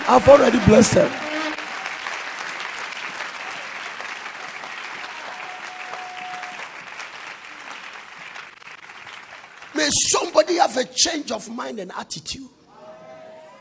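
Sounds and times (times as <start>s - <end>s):
audience clapping: 0.0s - 10.6s
speech: 0.1s - 1.2s, 9.9s - 12.6s.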